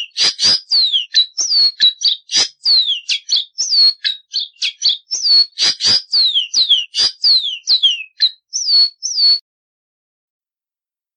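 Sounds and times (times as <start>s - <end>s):
seedeater song: 0.0s - 9.4s.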